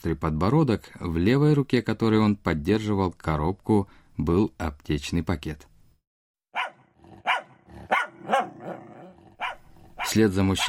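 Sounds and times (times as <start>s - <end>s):
speech: 0.0s - 5.7s, 10.1s - 10.6s
dog barking: 6.6s - 10.6s.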